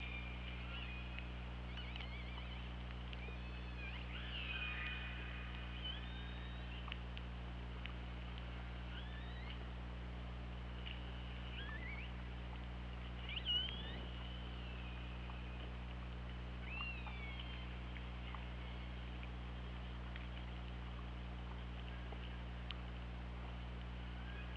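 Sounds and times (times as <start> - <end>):
orca calls underwater: 0.0 - 7.2, 8.8 - 9.7, 13.2 - 20.4
hydrophone hiss: 0.0 - 24.5
low drone: 0.0 - 24.5.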